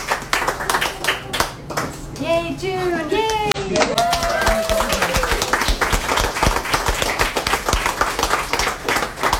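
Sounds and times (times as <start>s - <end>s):
audience applause at a live event: 0.0s - 1.6s, 3.7s - 9.3s
speech: 2.2s - 4.1s.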